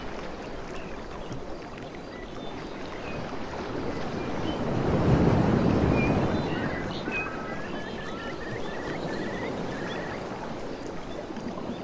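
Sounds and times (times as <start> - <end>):
ocean surf washing on a beach: 3.2 - 11.7
ocean wave breaking: 3.8 - 11.1
faint bird chirps: 3.9 - 11.0.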